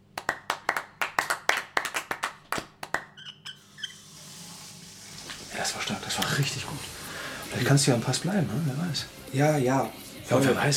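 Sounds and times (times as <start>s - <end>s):
applause: 0.2s - 3.2s
speech: 5.7s - 10.7s.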